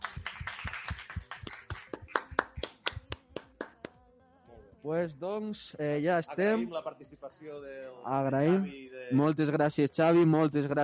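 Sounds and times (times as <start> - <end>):
audience applause: 0.0 - 3.1
speech: 4.8 - 10.8.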